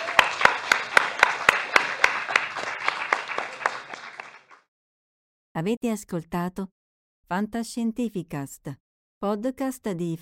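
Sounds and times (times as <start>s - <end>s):
audience applause: 0.0s - 4.6s
speech: 5.6s - 10.2s.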